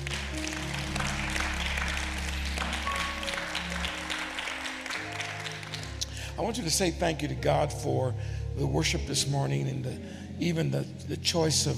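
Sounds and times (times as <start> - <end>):
audience clapping hands: 0.0 - 6.7
speech: 6.4 - 11.7.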